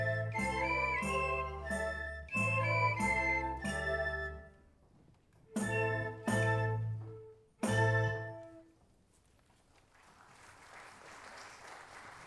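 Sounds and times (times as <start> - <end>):
concert postlude recorded on a Tascam: 0.0 - 4.6, 5.5 - 8.7.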